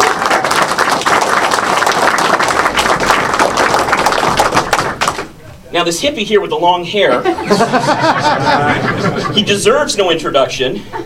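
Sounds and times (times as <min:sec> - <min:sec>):
crowd applause: 0:00.0 - 0:05.3
speech: 0:05.8 - 0:11.0
laughter: 0:07.0 - 0:09.8, 0:10.8 - 0:11.0.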